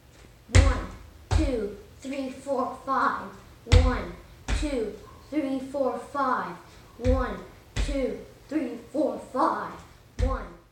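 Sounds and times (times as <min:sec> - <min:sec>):
heavy foot stomps: 0:00.6 - 0:01.6, 0:03.7 - 0:04.8, 0:07.0 - 0:08.1, 0:10.2 - 0:10.5
speech: 0:01.4 - 0:10.4.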